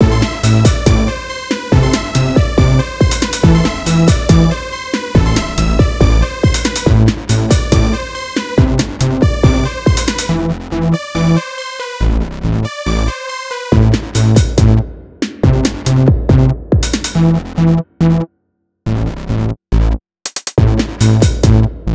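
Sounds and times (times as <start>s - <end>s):
music loop: 0.0s - 18.3s, 19.8s - 21.9s.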